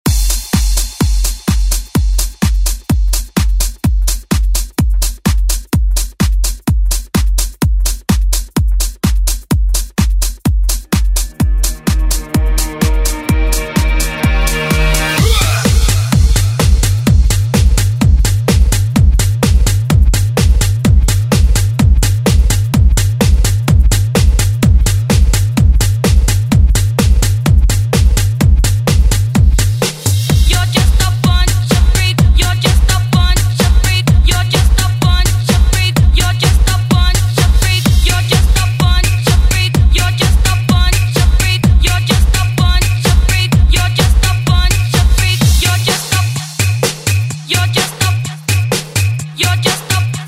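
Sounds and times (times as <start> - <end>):
90s drum beat: 0.0 - 50.2.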